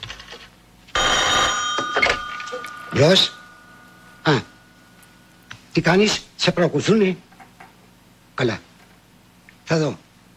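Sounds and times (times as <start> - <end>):
telephone bell ringing: 1.0 - 5.1
speech: 2.9 - 3.4, 4.2 - 4.5, 5.8 - 7.3, 8.4 - 8.7, 9.7 - 10.0.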